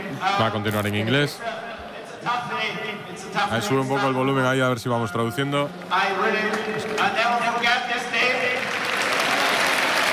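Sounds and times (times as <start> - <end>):
speech: 0.2 - 8.6
audience applause: 6.4 - 10.1.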